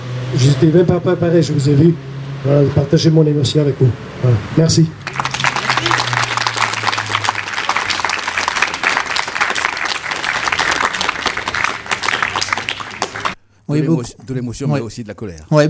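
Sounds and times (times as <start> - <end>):
speech: 0.3 - 5.3, 13.7 - 15.6
audience applause: 5.0 - 13.4.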